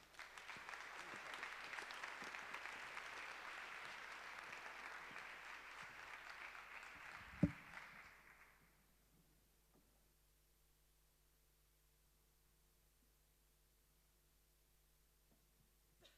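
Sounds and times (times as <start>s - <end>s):
applause: 0.0s - 8.8s.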